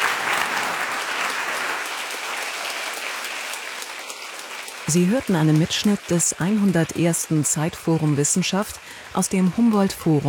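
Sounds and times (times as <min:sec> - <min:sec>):
audience applause at the close of a panel debate at an evening science forum: 0:00.0 - 0:07.4
speech: 0:04.9 - 0:10.2.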